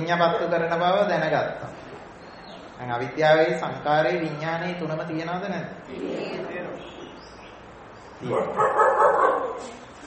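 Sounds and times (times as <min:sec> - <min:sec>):
speech: 0:00.1 - 0:01.8, 0:02.8 - 0:07.0, 0:08.2 - 0:09.8
dog barking outside: 0:08.2 - 0:09.7.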